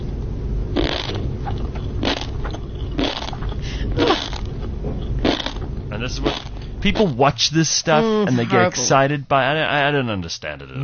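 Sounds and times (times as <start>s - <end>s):
low rumble: 0.0s - 10.8s
person crunching on tobiko eggs and sea grapes: 0.8s - 7.2s
speech: 6.0s - 10.8s.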